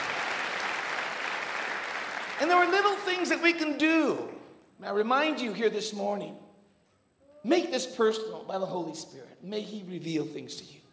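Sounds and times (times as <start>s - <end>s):
audience hand clapping: 0.0s - 3.0s
speech: 2.4s - 6.4s, 7.4s - 10.8s.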